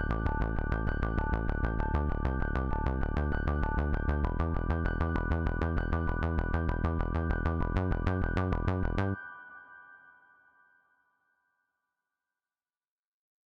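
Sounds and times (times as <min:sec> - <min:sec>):
80s-style music: 0:00.0 - 0:09.2.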